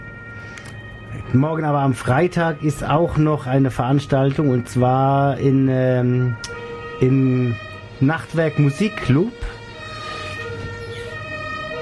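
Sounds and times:
fire engine siren outside: 0:00.0 - 0:11.8
low rumble of traffic: 0:00.0 - 0:11.8
speech: 0:01.2 - 0:09.5.

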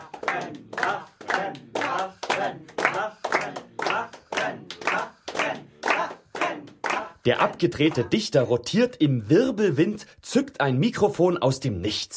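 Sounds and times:
audience clapping applause: 0:00.0 - 0:07.1
speech: 0:07.2 - 0:12.1.

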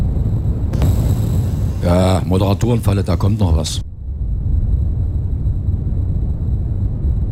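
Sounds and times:
loud wind blowing: 0:00.0 - 0:07.3
speech: 0:01.8 - 0:03.8.

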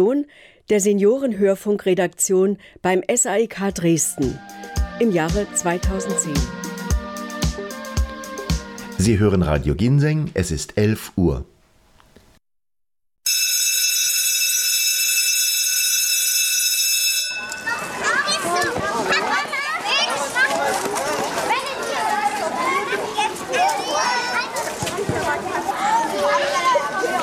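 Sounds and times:
speech: 0:00.0 - 0:06.7, 0:09.0 - 0:11.5
school bell ringing: 0:13.3 - 0:18.8
schoolchildren chattering, shouting and playing at recess: 0:17.3 - 0:27.2.

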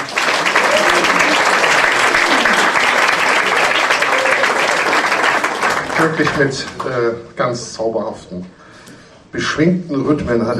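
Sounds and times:
audience applause: 0:00.0 - 0:07.0
speech: 0:06.0 - 0:08.6, 0:09.3 - 0:10.5.

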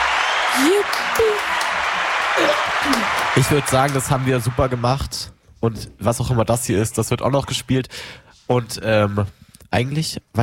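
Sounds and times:
group applauding: 0:00.0 - 0:05.2
speech: 0:00.6 - 0:10.4.

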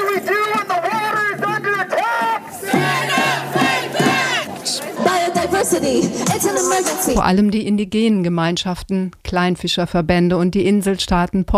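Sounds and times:
speech: 0:00.2 - 0:00.4, 0:05.8 - 0:11.5
street protest crowd chanting: 0:01.4 - 0:07.2.

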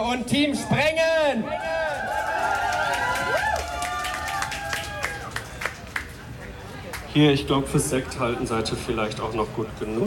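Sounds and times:
speech: 0:00.0 - 0:01.8, 0:07.2 - 0:10.0
audience applause: 0:01.7 - 0:06.1.

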